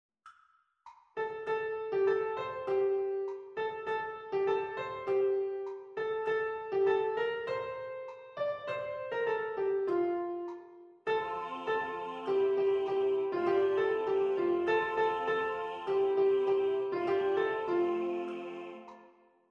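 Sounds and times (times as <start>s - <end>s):
piano: 1.2s - 19.2s
soprano singing: 11.1s - 19.2s.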